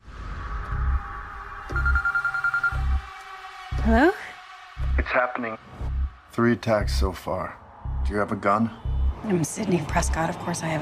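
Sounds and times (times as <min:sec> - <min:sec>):
telephone ringing: 0:01.7 - 0:03.0
speech: 0:03.9 - 0:04.2, 0:05.2 - 0:10.8.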